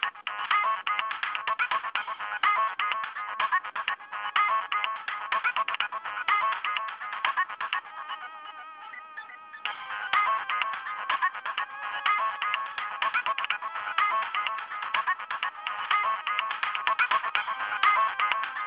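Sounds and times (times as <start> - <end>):
techno music: 0.0 - 18.6.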